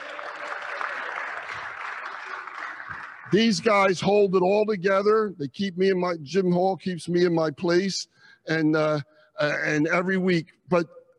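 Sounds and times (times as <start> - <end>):
audience applause: 0.0 - 3.8
speech: 3.3 - 11.0.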